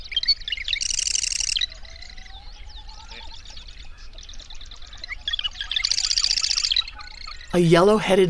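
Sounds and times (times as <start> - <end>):
marsh wren song: 0.0 - 8.2
speech: 7.6 - 8.2.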